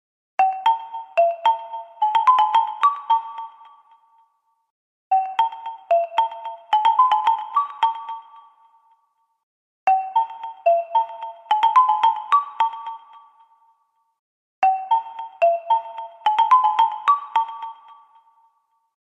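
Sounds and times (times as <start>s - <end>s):
phone ringtone: 0.4s - 4.1s, 5.1s - 8.8s, 9.9s - 13.5s, 14.6s - 18.6s.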